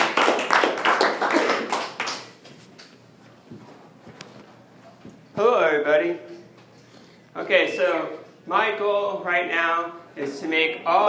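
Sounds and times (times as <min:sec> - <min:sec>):
audience clapping: 0:00.0 - 0:02.6
speech: 0:05.4 - 0:06.3, 0:07.5 - 0:11.0.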